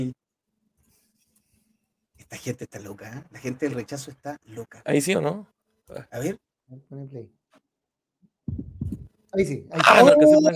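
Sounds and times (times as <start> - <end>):
speech: 0.0 - 0.2, 2.2 - 7.4, 9.3 - 10.5
heartbeat sounds in a played video: 8.5 - 9.1.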